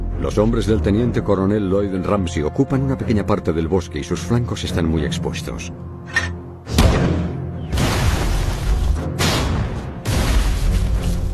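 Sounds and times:
speech: 0.2s - 6.3s
German mortar and artillery fire in a forest in the Colmar Pocket: 6.7s - 11.2s.

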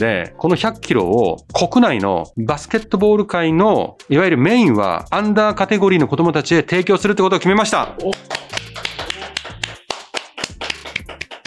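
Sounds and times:
speech: 0.0s - 8.4s
one person clapping hands: 8.0s - 11.4s.

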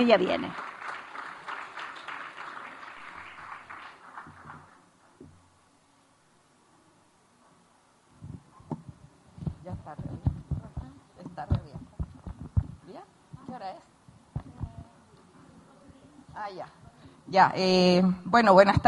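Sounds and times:
speech: 0.0s - 0.7s, 17.3s - 18.8s
audience applause: 0.0s - 4.9s
quiet murmur: 6.8s - 17.3s
scattered thumps and shuffles: 8.2s - 13.6s.

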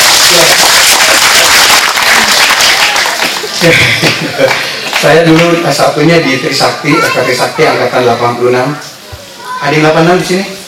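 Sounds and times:
audience applause: 0.0s - 5.5s
laughter: 3.2s - 5.0s
speech: 3.6s - 8.9s, 9.6s - 10.6s.

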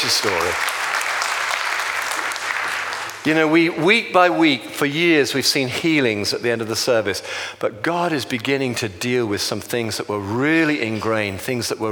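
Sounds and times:
audience round of applause: 0.0s - 4.0s
speech: 0.1s - 0.8s, 3.2s - 11.9s.

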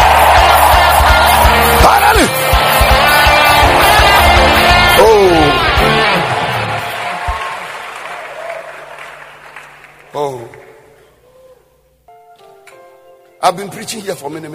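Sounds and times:
audience screaming and cheering: 0.0s - 9.7s
audience clapping: 0.0s - 11.1s
speech: 13.5s - 14.5s.

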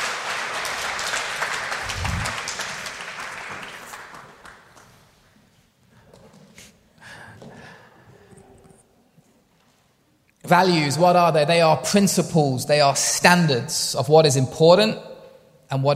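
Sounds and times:
audience applause: 0.0s - 4.8s
speech: 10.5s - 15.1s, 15.7s - 15.9s.

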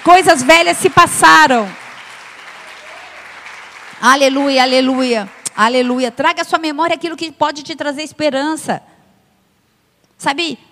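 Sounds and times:
speech: 0.0s - 1.8s, 4.0s - 8.9s, 10.2s - 10.6s
audience applause: 0.0s - 5.6s.

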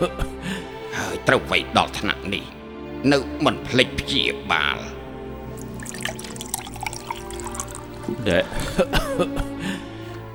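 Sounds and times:
speech: 0.0s - 5.0s, 8.1s - 9.5s
hot water being poured for drinking: 5.5s - 8.3s.

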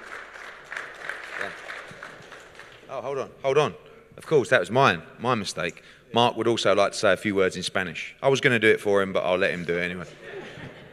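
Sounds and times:
round of applause: 0.0s - 2.9s
speech: 2.9s - 10.4s
laughter: 10.0s - 10.9s.

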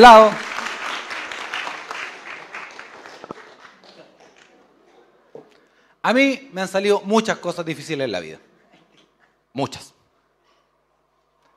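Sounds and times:
speech: 0.0s - 0.4s, 6.0s - 8.5s, 9.6s - 10.0s
loud audience applause: 0.0s - 4.7s.

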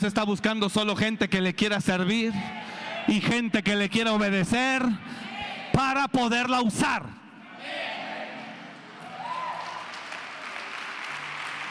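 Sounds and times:
speech: 0.0s - 5.2s, 5.8s - 7.9s
audience applauding: 8.8s - 11.6s.

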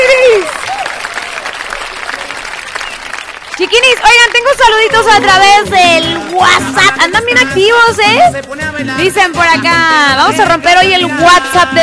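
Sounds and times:
applause: 0.0s - 6.4s
speech: 3.6s - 11.8s.

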